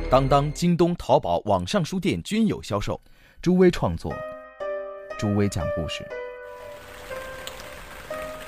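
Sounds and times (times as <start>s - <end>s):
speech: 0.1s - 4.3s, 5.2s - 6.2s
raindrops falling on a rainy night: 6.5s - 8.4s.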